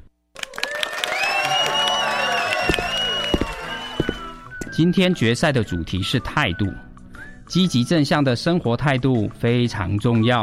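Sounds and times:
audience applause: 0.4s - 4.4s
speech: 4.8s - 6.8s, 7.5s - 10.4s.

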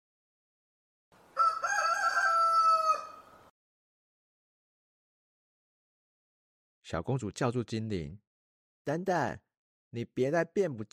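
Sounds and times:
rooster crowing: 1.3s - 3.5s
speech: 6.9s - 8.2s, 8.8s - 10.9s.

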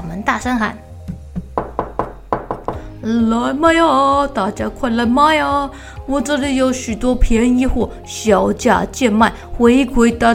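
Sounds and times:
speech: 0.2s - 0.9s, 3.0s - 10.3s
hammer knocking on a wooden crate: 1.1s - 2.9s.

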